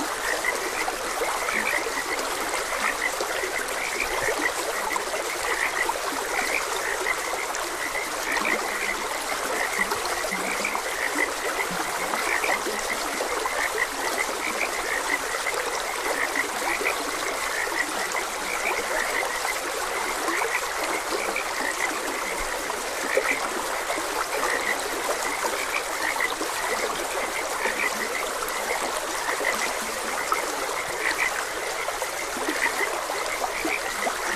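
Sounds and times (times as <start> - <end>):
frogs croaking: 0.0 - 34.3
stream flowing: 0.0 - 34.3.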